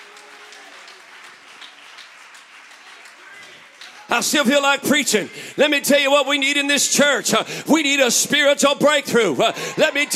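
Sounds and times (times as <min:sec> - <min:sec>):
audience clapping hands: 0:00.0 - 0:05.3
speech: 0:04.1 - 0:10.1.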